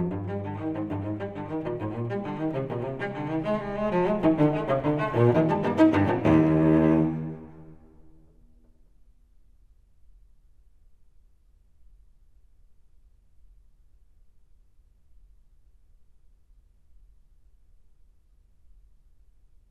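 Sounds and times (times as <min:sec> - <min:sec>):
solo cello suite in E: 0:00.0 - 0:08.4.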